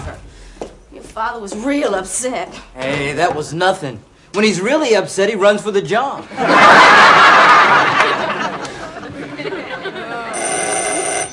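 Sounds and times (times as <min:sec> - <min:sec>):
speech: 0:01.2 - 0:08.3
laughter: 0:06.2 - 0:10.5
doorbell ringing: 0:10.3 - 0:11.3.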